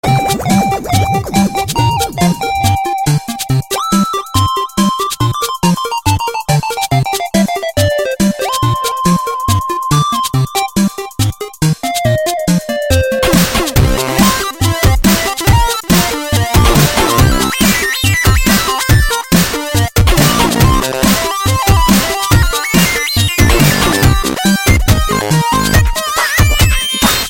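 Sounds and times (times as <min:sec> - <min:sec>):
chiptune music: 0:00.0 - 0:27.2.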